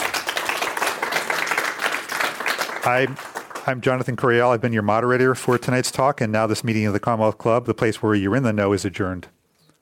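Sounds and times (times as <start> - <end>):
audience applause: 0.0 - 4.2
speech: 2.8 - 9.4.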